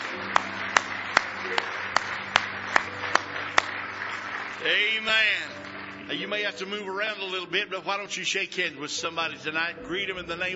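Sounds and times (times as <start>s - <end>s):
audience clapping hands in praise: 0.0s - 7.4s
speech: 4.6s - 10.5s.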